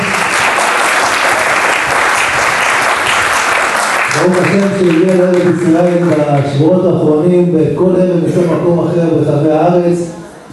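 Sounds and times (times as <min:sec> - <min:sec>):
audience applause: 0:00.0 - 0:06.5
speech: 0:04.2 - 0:10.2.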